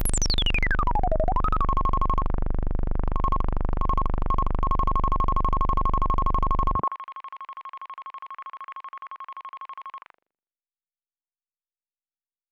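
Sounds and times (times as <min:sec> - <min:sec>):
space interlude music: 0:00.0 - 0:06.6.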